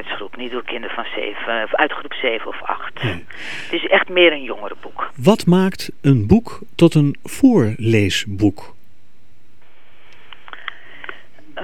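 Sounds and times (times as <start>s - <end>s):
speech: 0.2s - 8.8s
loud breathing into microphone: 3.0s - 3.8s, 9.9s - 11.4s.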